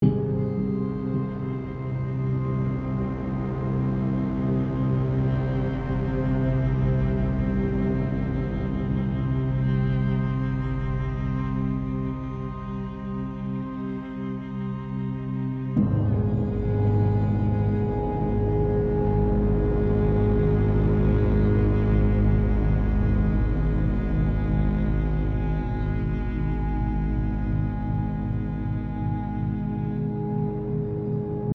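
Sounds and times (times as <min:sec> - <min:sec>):
tense music loop: 0:00.0 - 0:31.5.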